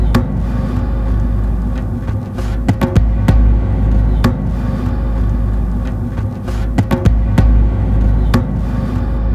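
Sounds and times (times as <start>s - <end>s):
djembe: 0.0s - 9.2s.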